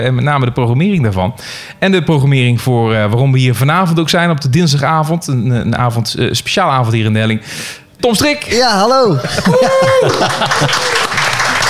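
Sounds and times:
speech: 0.0s - 11.2s
laughter: 9.1s - 11.6s
audience applause: 9.3s - 11.6s.

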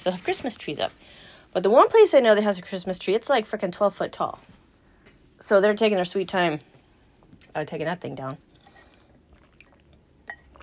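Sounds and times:
speech: 0.0s - 4.6s, 5.4s - 6.7s, 7.6s - 8.5s
person drinking water: 8.5s - 10.6s.

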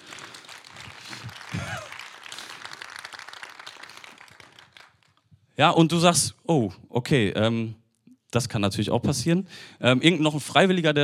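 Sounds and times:
audience applause: 0.0s - 5.2s
speech: 5.6s - 11.0s.

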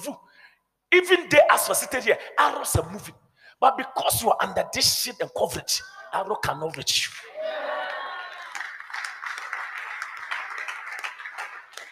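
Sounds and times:
speech: 0.9s - 7.3s
audience clapping: 7.8s - 11.8s.

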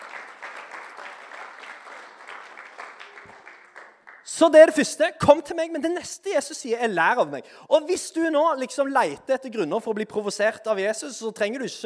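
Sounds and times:
audience applause: 0.0s - 4.3s
speech: 4.4s - 11.8s.

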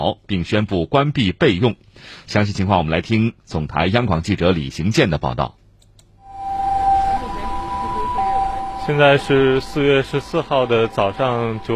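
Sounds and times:
speech: 0.0s - 5.6s, 8.9s - 11.7s
ambulance siren wailing: 6.2s - 11.7s.

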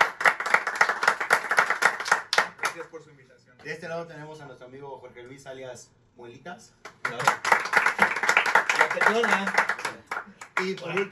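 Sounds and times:
applause: 0.0s - 3.0s, 6.9s - 11.1s
speech: 2.8s - 7.6s, 9.0s - 11.1s.

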